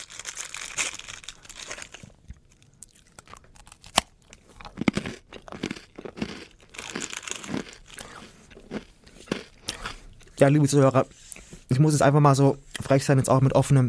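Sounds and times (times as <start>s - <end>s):
chewing a crunchy WWI trench ration biscuit: 0.0s - 10.4s
speech: 10.4s - 11.2s, 11.8s - 13.8s.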